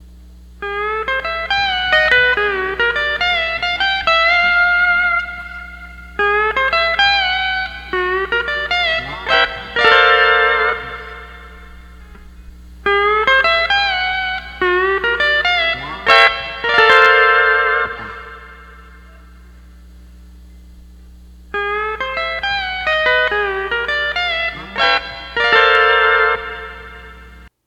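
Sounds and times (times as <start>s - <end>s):
12-string lap guitar playing: 0.2s - 27.5s.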